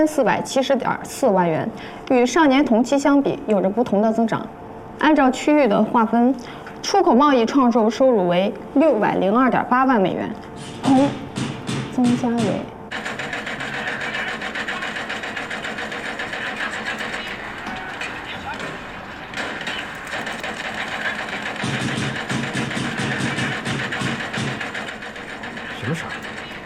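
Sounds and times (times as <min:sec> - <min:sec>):
speech: 0:00.0 - 0:12.7
renovation work noise: 0:10.4 - 0:26.6.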